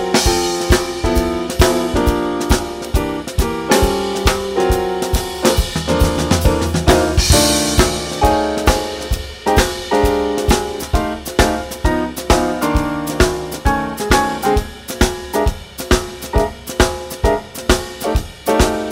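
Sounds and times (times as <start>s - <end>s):
jazz blues backing music without bass: 0.0s - 18.9s.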